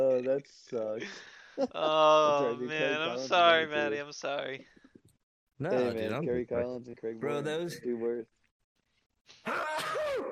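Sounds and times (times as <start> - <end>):
speech: 0.0 - 4.8, 5.6 - 8.4, 9.4 - 10.3
person sneezing: 9.4 - 10.3.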